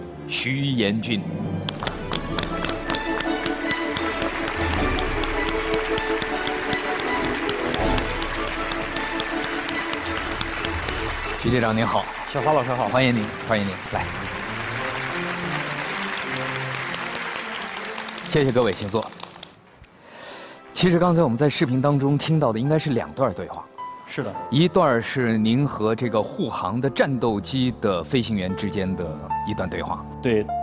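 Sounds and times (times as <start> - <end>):
speech: 0.3 - 1.9, 11.4 - 14.3, 18.3 - 19.2, 20.8 - 30.6
audience applause: 1.8 - 19.8.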